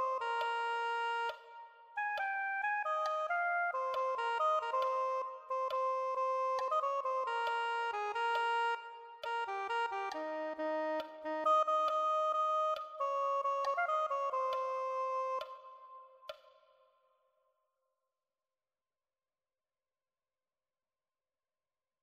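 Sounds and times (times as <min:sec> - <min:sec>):
soprano saxophone: 0:00.0 - 0:16.3.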